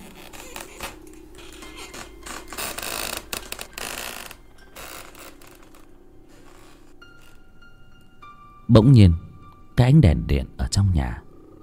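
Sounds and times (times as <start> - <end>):
rocking chair creaking: 0.0 - 7.6
speech: 8.7 - 9.2, 9.8 - 11.2.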